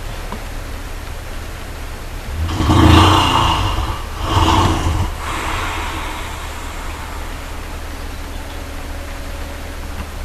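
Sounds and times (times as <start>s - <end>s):
brown bear huffing: 2.3s - 8.1s.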